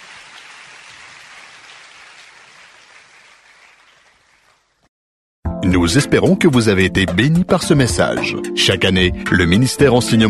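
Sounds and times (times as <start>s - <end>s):
church congregation applauding and acclaiming Jesus: 0.0s - 4.8s
speech: 5.7s - 10.2s.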